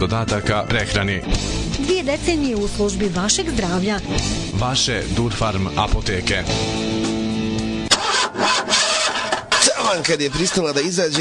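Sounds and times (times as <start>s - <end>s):
speech: 0.0s - 7.1s, 9.9s - 11.1s
car engine cranking but failing to start: 7.9s - 11.1s.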